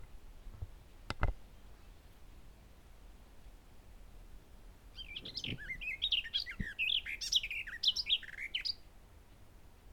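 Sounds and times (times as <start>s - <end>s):
Garden warbler song: 4.9s - 8.8s.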